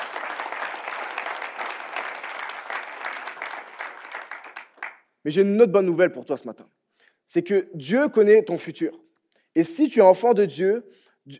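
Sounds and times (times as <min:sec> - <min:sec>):
audience applause: 0:00.0 - 0:05.0
speech: 0:05.2 - 0:09.0, 0:09.6 - 0:11.3.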